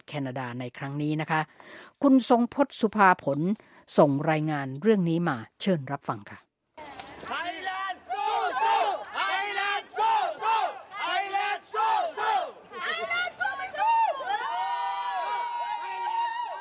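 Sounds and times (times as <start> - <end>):
speech: 0.1 - 6.9
Thai football fans cheering in stadium: 7.6 - 16.5.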